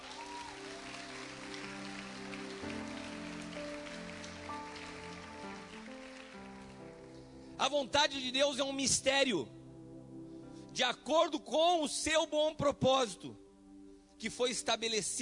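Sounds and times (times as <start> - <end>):
audience applauding: 0.0 - 7.4
speech: 7.6 - 9.6, 10.8 - 13.4, 14.2 - 15.2.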